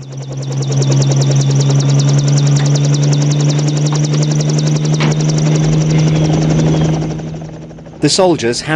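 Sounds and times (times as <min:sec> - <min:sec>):
military helicopter engine drone: 0:00.0 - 0:08.7
speech: 0:08.0 - 0:08.7.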